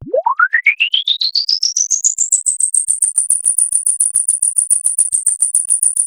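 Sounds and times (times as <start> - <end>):
sound effects mix: 0.0 - 1.0.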